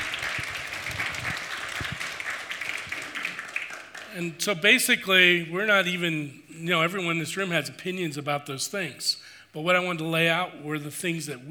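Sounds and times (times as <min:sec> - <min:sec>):
audience applause: 0:00.0 - 0:04.2
speech: 0:04.2 - 0:11.5.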